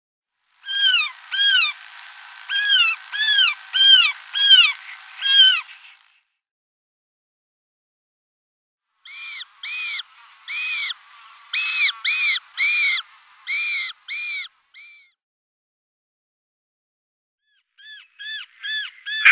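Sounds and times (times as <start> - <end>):
European roller rasping calls: 0.6 - 6.2, 9.1 - 15.1, 17.8 - 19.3.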